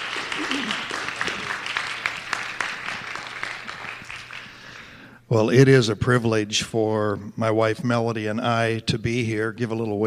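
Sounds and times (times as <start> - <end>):
audience applauding: 0.0 - 5.0
speech: 0.4 - 1.0, 5.3 - 10.0.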